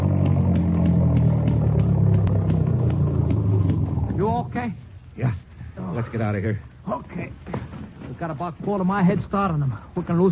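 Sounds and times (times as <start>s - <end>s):
car engine rumbling at speed after a tire was shot out: 0.0s - 6.8s
faint rhythmic ticking thumps: 0.0s - 10.3s
speech: 4.4s - 5.4s, 6.0s - 7.6s, 8.2s - 10.3s.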